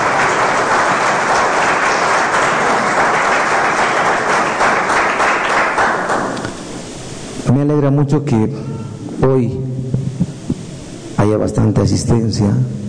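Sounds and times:
large crowd applause: 0:00.0 - 0:06.5
speech: 0:07.5 - 0:09.7, 0:11.2 - 0:12.8.

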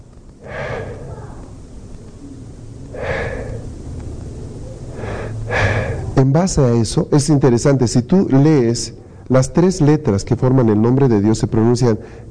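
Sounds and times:
low steady hum: 0:00.0 - 0:12.2
audible exhaled breaths: 0:00.4 - 0:01.6, 0:02.8 - 0:04.0, 0:04.9 - 0:06.2
speech: 0:06.2 - 0:12.2.

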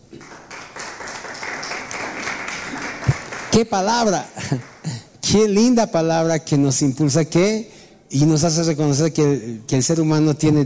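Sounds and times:
audience applause: 0:00.2 - 0:03.8
speech: 0:03.6 - 0:10.6.

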